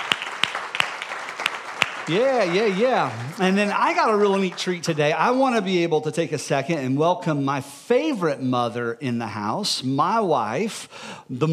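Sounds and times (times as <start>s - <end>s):
applause: 0.0s - 5.4s
speech: 2.1s - 11.5s.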